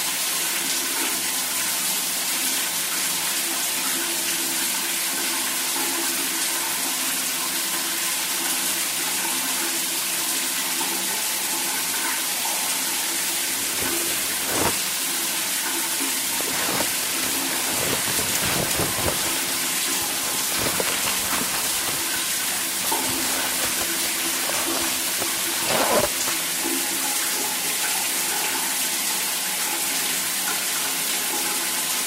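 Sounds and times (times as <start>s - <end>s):
shower running: 0.0s - 32.0s
splashing and clatter: 13.0s - 26.8s.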